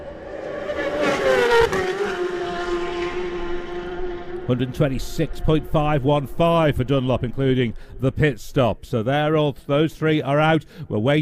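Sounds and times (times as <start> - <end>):
racing motorcycle passing the grandstand at speed: 0.0 - 8.1
speech: 4.5 - 11.2.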